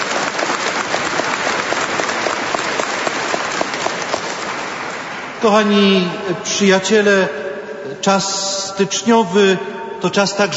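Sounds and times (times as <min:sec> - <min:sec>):
crowd applauding: 0:00.0 - 0:05.6
speech: 0:05.4 - 0:07.4, 0:08.0 - 0:10.5.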